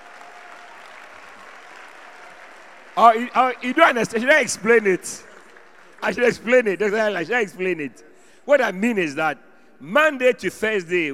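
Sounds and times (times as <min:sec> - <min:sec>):
audience clapping: 0:00.0 - 0:07.1
speech: 0:03.0 - 0:05.3, 0:06.0 - 0:11.1.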